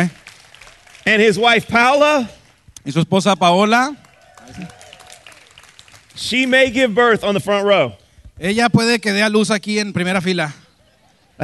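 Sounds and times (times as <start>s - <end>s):
speech: 0.0s - 0.2s, 1.0s - 4.8s, 6.2s - 10.6s
audience clapping: 0.0s - 2.7s, 3.6s - 7.4s.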